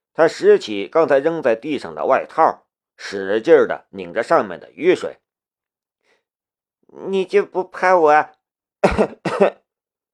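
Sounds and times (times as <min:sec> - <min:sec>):
speech: 0:00.2 - 0:05.2, 0:06.9 - 0:09.6
harsh coughing: 0:08.8 - 0:09.7.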